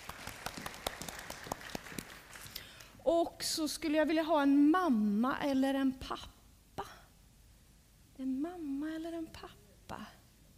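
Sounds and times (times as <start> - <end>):
audience applause: 0.0 - 2.6
speech: 3.1 - 6.4, 8.2 - 10.2.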